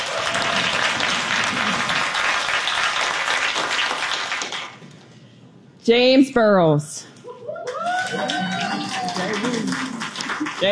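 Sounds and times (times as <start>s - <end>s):
audience applause: 0.0s - 4.8s, 7.6s - 10.7s
speech: 5.9s - 7.1s, 8.1s - 9.9s, 10.6s - 10.7s.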